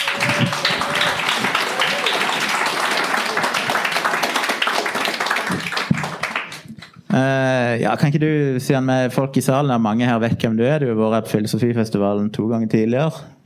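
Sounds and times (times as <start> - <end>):
audience applause: 0.0 - 7.0
speech: 7.2 - 13.4.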